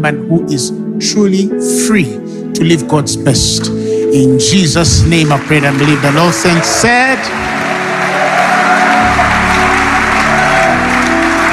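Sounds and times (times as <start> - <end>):
speech: 0.0 - 7.6
church congregation clapping: 4.7 - 11.5.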